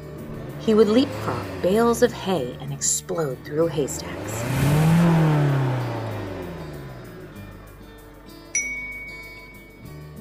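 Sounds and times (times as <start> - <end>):
small engine steadily putting and chuffing: 0.0 - 8.5
speech: 0.7 - 4.8
sharp clink: 8.6 - 9.8.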